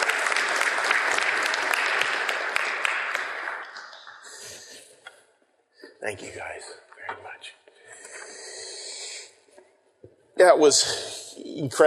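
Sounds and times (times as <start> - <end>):
audience round of applause: 0.0 - 4.7
speech: 6.0 - 7.6, 10.4 - 11.8.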